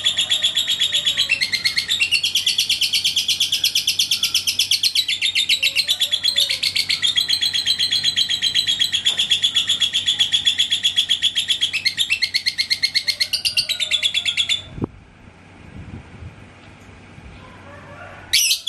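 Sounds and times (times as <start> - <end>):
lovebird chirping: 0.0 - 14.7.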